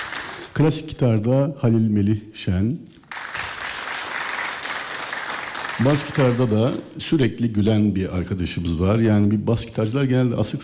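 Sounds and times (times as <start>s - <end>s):
audience applause for a bağlama player at a live performance: 0.0s - 0.6s, 3.1s - 6.9s
speech: 0.6s - 3.0s, 5.8s - 10.6s.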